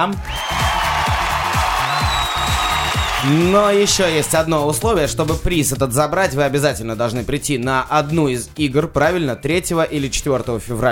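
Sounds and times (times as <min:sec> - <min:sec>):
speech: 0:00.0 - 0:00.4, 0:03.2 - 0:10.9
applause: 0:00.0 - 0:04.4
low rhythmic music: 0:00.0 - 0:10.9.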